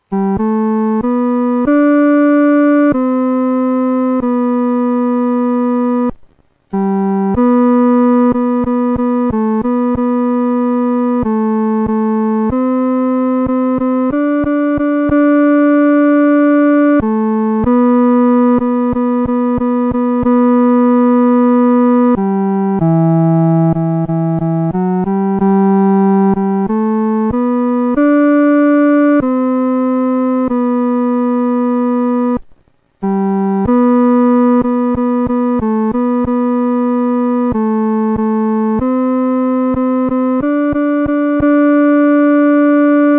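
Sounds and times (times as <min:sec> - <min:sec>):
solo music third voice: 0:00.0 - 0:43.1.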